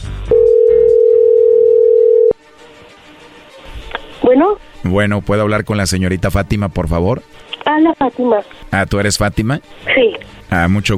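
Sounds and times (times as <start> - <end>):
telephone call electronic ringing tone: 0.3 - 2.4
speech: 4.3 - 10.9.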